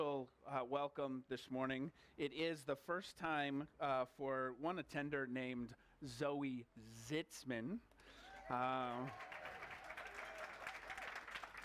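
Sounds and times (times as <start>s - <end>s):
speech: 0.0s - 9.5s
audience applause: 8.3s - 11.6s.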